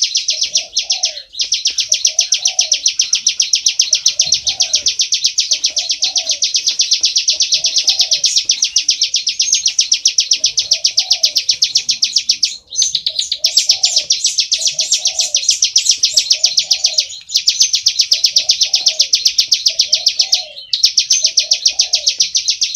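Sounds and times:
Bar-winged prinia giving fast high buzzy chirps: 0.0 - 22.7.

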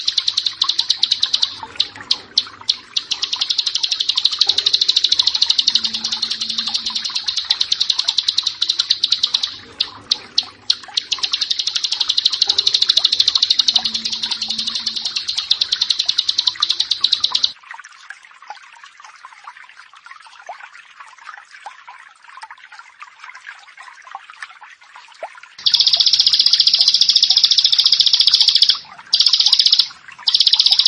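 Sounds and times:
bar-winged prinia song of sharp high chips: 0.0 - 17.5, 25.6 - 30.8.

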